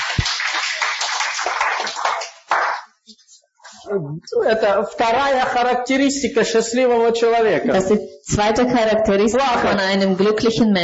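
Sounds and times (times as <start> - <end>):
audience applause: 0.0 - 2.9
speech: 3.9 - 10.8.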